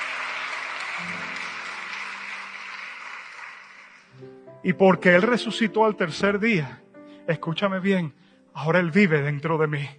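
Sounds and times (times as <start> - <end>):
audience applause: 0.0 - 4.2
speech: 1.0 - 1.6, 4.2 - 9.9.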